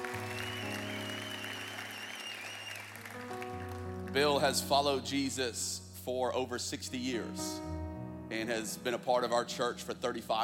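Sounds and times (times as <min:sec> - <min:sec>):
church audience clapping: 0:00.0 - 0:04.3
speech: 0:04.2 - 0:07.7, 0:08.3 - 0:10.4.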